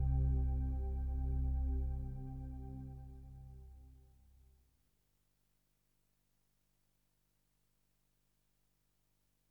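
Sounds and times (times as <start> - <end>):
Roland System8 synthesizer: 0.0 - 4.1.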